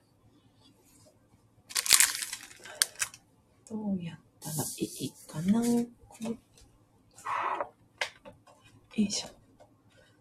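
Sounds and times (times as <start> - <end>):
wrapping paper crinkling and rustling: 1.7 - 3.2
speech: 3.7 - 6.0, 9.0 - 9.3.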